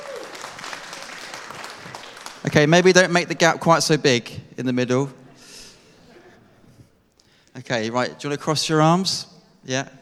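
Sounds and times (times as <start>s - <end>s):
audience applause: 0.0s - 2.7s
speech: 2.4s - 5.2s, 7.6s - 10.0s.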